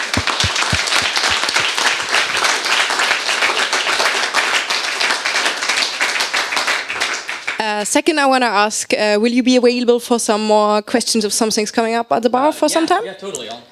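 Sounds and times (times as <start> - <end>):
audience applause: 0.0 - 7.6
speech: 7.8 - 13.6.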